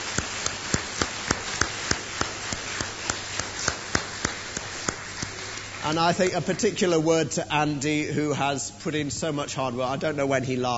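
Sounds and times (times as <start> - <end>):
hand claps: 0.0 - 6.7
speech: 5.9 - 10.7.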